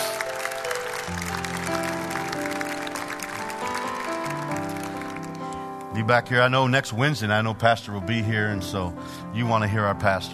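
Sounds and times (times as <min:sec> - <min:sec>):
audience clapping: 0:00.0 - 0:06.0
sustained musical chords: 0:00.0 - 0:06.3
speech: 0:06.0 - 0:10.3.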